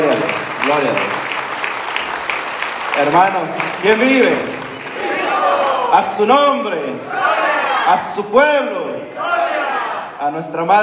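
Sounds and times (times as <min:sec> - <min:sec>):
audience applauding: 0:00.0 - 0:07.6
speech: 0:00.7 - 0:01.2, 0:03.0 - 0:04.6, 0:05.9 - 0:09.3, 0:10.2 - 0:10.8.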